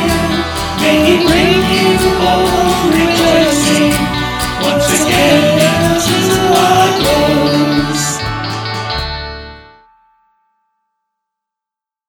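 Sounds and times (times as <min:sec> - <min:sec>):
choir singing: 0:00.0 - 0:08.4.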